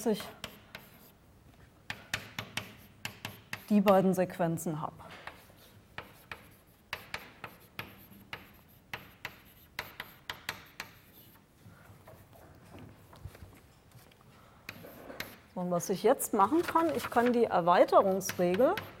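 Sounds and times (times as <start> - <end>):
speech: 0.0 - 0.5, 3.7 - 5.2, 15.6 - 18.9
writing taps and scratches during a logic lecture: 0.2 - 1.1, 1.9 - 4.0, 5.2 - 11.4, 14.7 - 15.5, 18.0 - 18.9.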